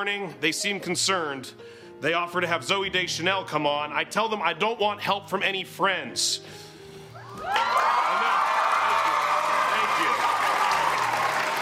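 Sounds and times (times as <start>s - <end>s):
speech: 0.0s - 6.7s
scattered cheers and whoops: 7.2s - 11.6s
audience clapping: 7.4s - 11.6s.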